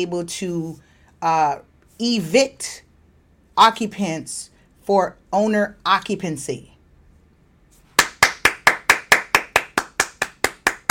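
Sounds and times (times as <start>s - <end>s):
speech: 0.0s - 2.8s, 3.6s - 6.7s
one person clapping hands: 7.9s - 10.8s.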